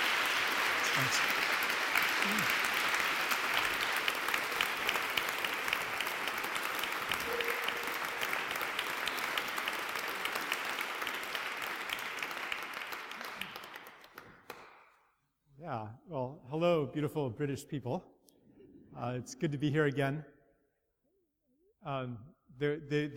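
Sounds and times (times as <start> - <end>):
audience applause welcoming a speaker at a talk: 0.0 - 14.8
speech: 1.0 - 1.4, 2.2 - 2.6, 17.0 - 18.2, 19.0 - 20.4, 21.8 - 23.1.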